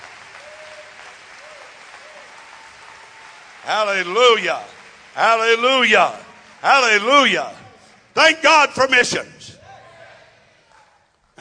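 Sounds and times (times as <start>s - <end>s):
audience clapping hands: 0.0s - 8.2s
speech: 3.6s - 7.6s, 8.2s - 9.6s.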